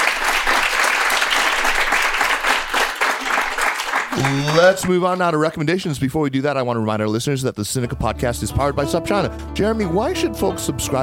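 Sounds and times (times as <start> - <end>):
audience applause for a podcast guest after an interview: 0.0 - 5.0
speech: 4.3 - 11.0.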